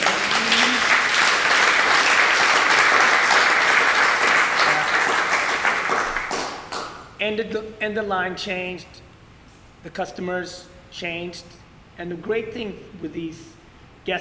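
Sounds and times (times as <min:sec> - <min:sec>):
crowd applause: 0:00.0 - 0:07.0
speech: 0:07.2 - 0:09.0, 0:09.8 - 0:14.2.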